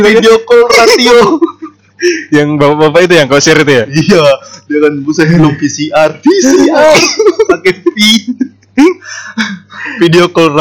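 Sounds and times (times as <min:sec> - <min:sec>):
speech: 0:00.0 - 0:10.5
laughter: 0:00.7 - 0:01.8, 0:06.3 - 0:10.1
person coughing: 0:06.6 - 0:07.4.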